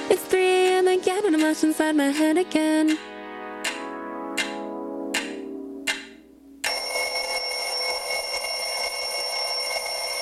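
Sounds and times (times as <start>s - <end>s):
speech: 0.1s - 3.1s
loud bright continuous ringing: 6.7s - 10.2s
bell chiming: 6.7s - 10.2s.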